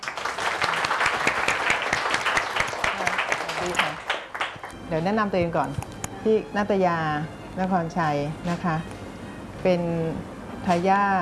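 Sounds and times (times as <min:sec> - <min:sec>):
audience applause welcoming a guest: 0:00.0 - 0:04.7
speech: 0:04.9 - 0:08.9, 0:09.6 - 0:11.2.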